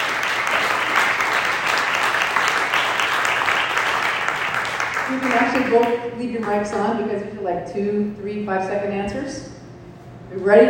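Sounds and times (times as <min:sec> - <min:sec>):
audience applause: 0:00.0 - 0:05.9
speech: 0:05.1 - 0:09.5, 0:10.3 - 0:10.6.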